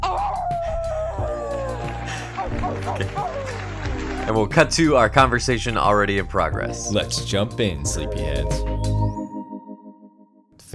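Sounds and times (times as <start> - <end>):
wolf howl: 0.0 - 4.4
laughter: 0.6 - 7.1
speech: 4.3 - 8.9.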